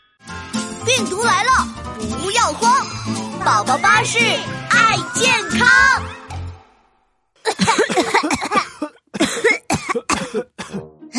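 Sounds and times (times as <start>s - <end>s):
speech: 0.9s - 6.2s
people coughing: 7.4s - 11.1s.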